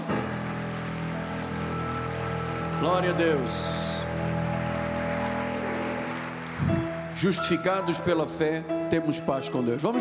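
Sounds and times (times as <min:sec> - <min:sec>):
audience applause: 0:00.0 - 0:07.8
speech: 0:02.8 - 0:04.5, 0:06.6 - 0:09.9.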